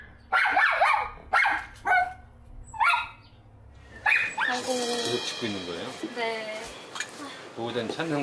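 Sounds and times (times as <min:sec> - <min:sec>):
dog barking anxiously: 0:00.0 - 0:03.3, 0:04.0 - 0:04.6
speech: 0:04.6 - 0:06.8, 0:07.6 - 0:08.2.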